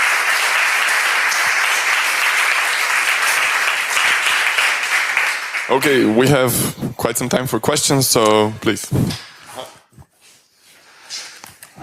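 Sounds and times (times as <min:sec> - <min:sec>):
crowd applauding: 0:00.0 - 0:06.4
speech: 0:05.7 - 0:09.3.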